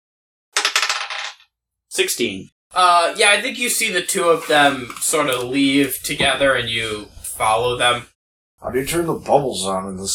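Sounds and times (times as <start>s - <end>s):
dice clattering across a hard tabletop: 0.6s - 1.5s
speech: 1.9s - 10.1s.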